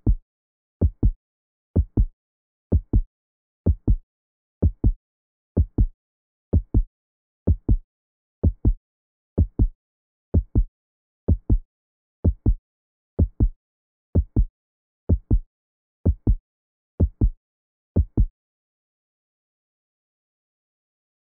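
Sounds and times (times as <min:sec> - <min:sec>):
heartbeat: 0:00.8 - 0:01.2, 0:01.8 - 0:02.1, 0:02.7 - 0:03.1, 0:03.7 - 0:04.0, 0:04.6 - 0:05.0, 0:05.6 - 0:05.9, 0:06.6 - 0:06.9, 0:07.5 - 0:07.8, 0:08.4 - 0:08.8, 0:09.4 - 0:09.8, 0:10.4 - 0:10.7, 0:11.3 - 0:12.6, 0:13.2 - 0:13.6, 0:14.2 - 0:14.5, 0:15.1 - 0:15.5, 0:16.1 - 0:16.4, 0:17.0 - 0:17.4, 0:18.0 - 0:18.3.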